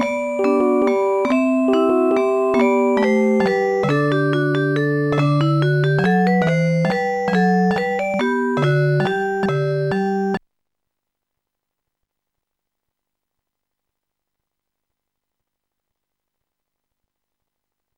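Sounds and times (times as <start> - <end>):
minuet: 0.0 - 10.4.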